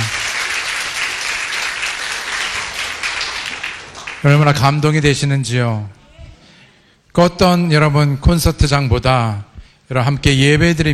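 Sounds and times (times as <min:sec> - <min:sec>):
audience applause: 0:00.0 - 0:04.6
speech: 0:04.2 - 0:06.0, 0:07.2 - 0:10.9.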